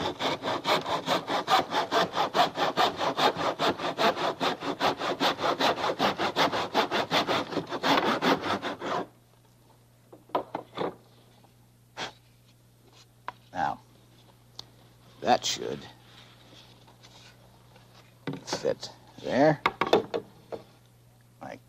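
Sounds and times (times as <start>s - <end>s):
hand saw cutting through wood: 0.0s - 9.1s
knocks and handling sounds: 10.1s - 11.1s, 19.6s - 20.7s
speech: 15.4s - 16.0s.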